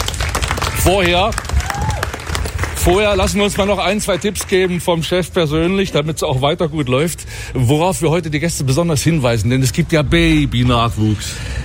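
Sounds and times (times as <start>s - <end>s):
small group clapping at a zoo event in Eilenburg: 0.0s - 5.2s
speech: 0.8s - 1.9s, 2.8s - 11.6s.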